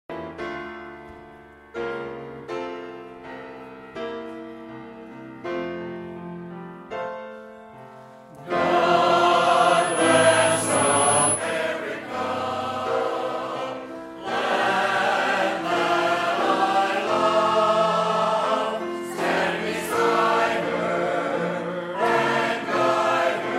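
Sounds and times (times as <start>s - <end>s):
Baptist choir singing: 8.4s - 23.5s.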